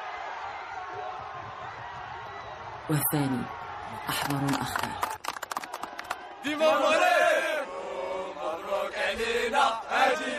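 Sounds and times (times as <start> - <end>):
crowd of fans of two teams cheering together: 0.0 - 10.3
speech: 2.9 - 5.1, 6.4 - 7.2
sharp claps or clicks: 4.0 - 6.3.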